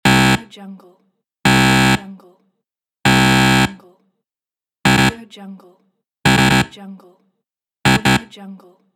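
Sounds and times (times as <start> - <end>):
wrong answer buzzer: 0.0 - 0.5, 1.5 - 2.1, 3.1 - 3.8, 4.9 - 5.2, 6.3 - 6.8, 7.9 - 8.3.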